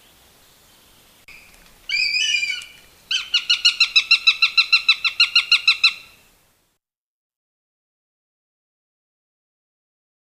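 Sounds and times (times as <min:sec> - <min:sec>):
northern goshawk down-slurred wailing calls: 0:01.9 - 0:06.2.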